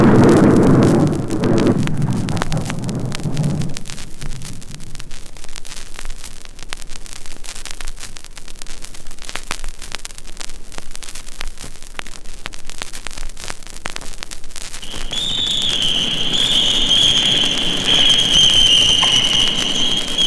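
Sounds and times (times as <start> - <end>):
storm at night: 0.0 - 5.6, 14.8 - 20.2.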